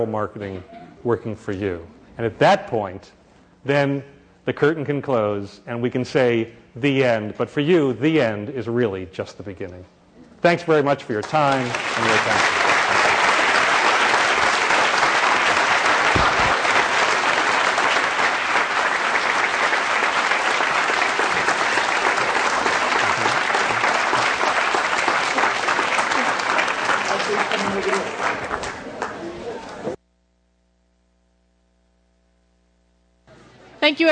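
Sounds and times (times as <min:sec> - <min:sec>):
speech: 0:00.0 - 0:12.6, 0:33.9 - 0:34.1
audience applause: 0:11.2 - 0:30.0.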